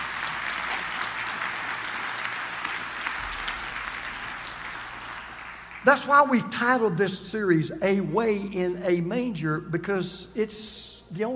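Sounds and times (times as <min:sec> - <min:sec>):
audience clapping: 0:00.0 - 0:06.2
speech: 0:05.8 - 0:11.3.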